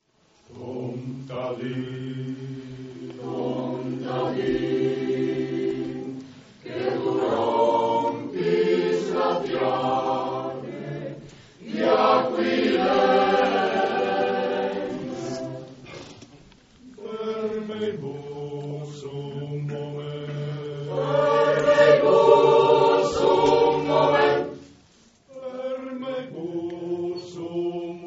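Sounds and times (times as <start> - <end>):
choir singing: 0.5 - 16.1, 16.8 - 28.0.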